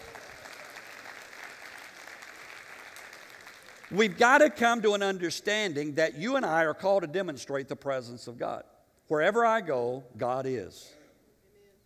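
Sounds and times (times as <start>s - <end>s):
audience clapping: 0.0s - 4.6s
speech: 3.9s - 11.0s.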